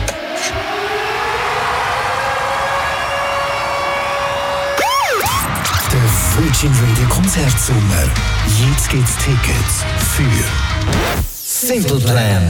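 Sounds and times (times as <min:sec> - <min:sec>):
siren wailing: 0:00.0 - 0:08.8
speech: 0:06.6 - 0:12.4.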